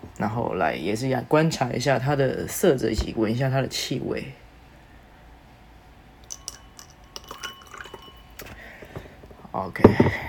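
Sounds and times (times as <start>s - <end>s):
speech: 0.2s - 4.4s, 9.7s - 10.2s
liquor pouring into a glass: 6.2s - 9.0s.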